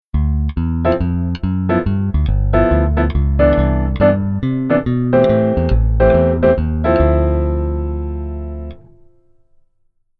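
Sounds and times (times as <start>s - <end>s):
keyboard rhythm: 0.2s - 9.1s.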